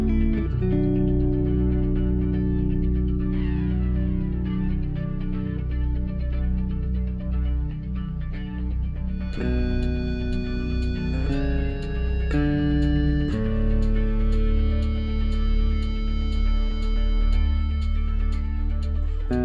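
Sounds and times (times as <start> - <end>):
electric bass playing a bounce rhythm in seven-eight: 0.0 - 19.4.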